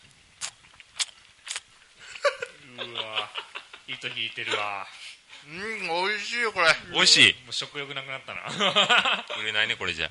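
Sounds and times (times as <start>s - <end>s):
loud chewing while eating: 0.4s - 1.7s
laughter: 2.0s - 4.9s, 8.4s - 9.7s
speech: 2.8s - 10.0s.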